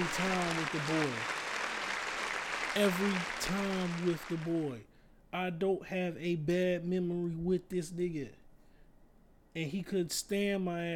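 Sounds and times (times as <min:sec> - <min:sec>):
applause: 0:00.0 - 0:04.8
speech: 0:00.1 - 0:01.4, 0:02.8 - 0:08.4, 0:09.6 - 0:10.9.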